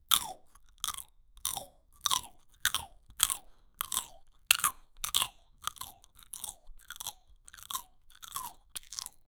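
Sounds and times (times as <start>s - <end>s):
chewing food: 0.0s - 9.3s.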